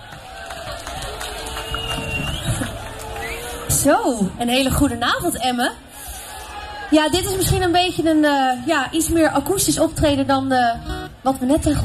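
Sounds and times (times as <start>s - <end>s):
audience applause: 0.0s - 4.1s
speech: 3.8s - 5.8s, 6.9s - 11.8s.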